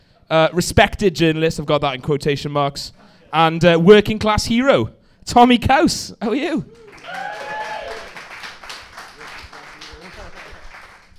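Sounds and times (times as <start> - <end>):
speech: 0.3 - 7.3
audience applauding: 6.7 - 11.1.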